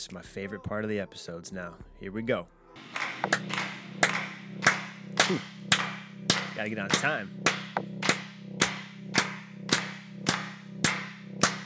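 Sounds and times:
speech: 0.0 - 7.6
hand claps: 2.8 - 11.6.

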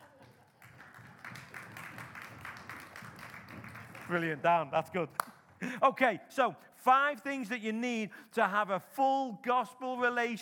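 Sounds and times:
crowd clapping and making noise: 0.0 - 5.7
speech: 4.1 - 10.4.

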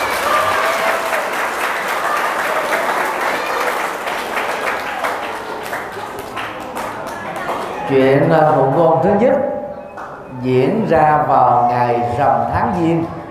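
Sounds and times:
children applauding loudly: 0.0 - 8.6
speech: 7.9 - 9.5, 10.4 - 13.2.

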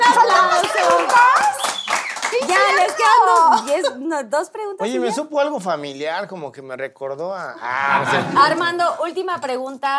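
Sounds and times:
applause: 0.0 - 3.8
speech: 2.9 - 9.9.

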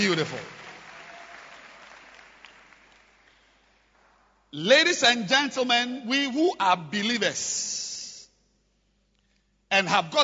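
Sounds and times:
speech: 0.0 - 0.6, 4.5 - 7.9, 9.7 - 10.2
audience clapping: 0.0 - 4.5.

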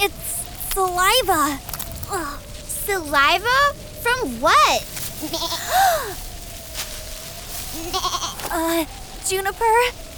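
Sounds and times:
speech: 0.0 - 6.2, 7.8 - 10.0
faint steady tone humming: 0.0 - 10.1
llama bleating: 5.2 - 5.7, 7.8 - 8.4.

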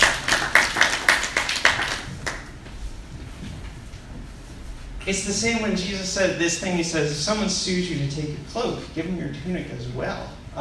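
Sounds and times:
audience applause for a speaker: 0.0 - 2.6
speech: 5.1 - 10.6.

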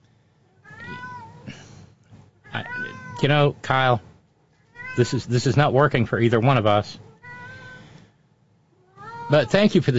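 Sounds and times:
cat meowing: 0.6 - 1.5, 2.4 - 3.4, 4.6 - 5.3, 7.1 - 8.0, 8.8 - 9.7
speech: 3.2 - 4.1, 5.0 - 7.0, 9.3 - 9.9.

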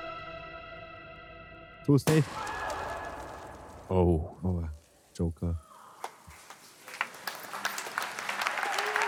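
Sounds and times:
speech: 1.8 - 2.6, 3.9 - 5.6
audience applause: 6.3 - 9.0.

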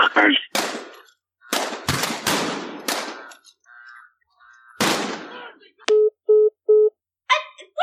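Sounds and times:
gunfire in a shootout: 0.2 - 3.4, 4.8 - 5.5
short electronic beeps: 5.9 - 6.9.

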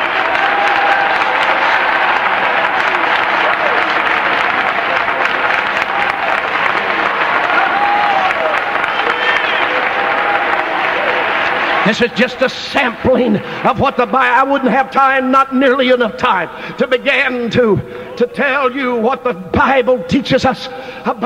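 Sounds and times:
audience clapping hands: 0.0 - 13.7
speech: 11.9 - 21.2.

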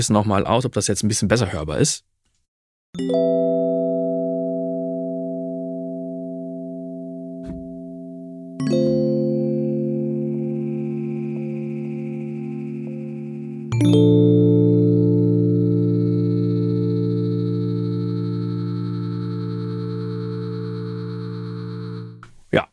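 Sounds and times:
speech: 0.0 - 2.1, 2.9 - 3.6
sustained synth chords with drift and scatter effect: 3.3 - 22.2
glitchy high-pitched artifacts: 10.2 - 13.8, 15.6 - 22.2.

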